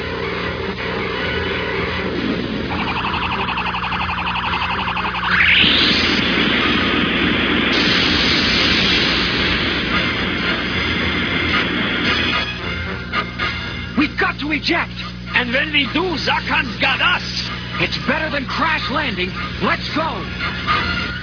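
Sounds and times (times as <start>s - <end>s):
synthesized spaceship drone for Zarkon's attack ship in flight: 0.0s - 12.2s
thick roaring hum of the spaceship: 0.0s - 15.7s
rising whoosh: 2.6s - 8.2s
speech: 14.6s - 20.8s.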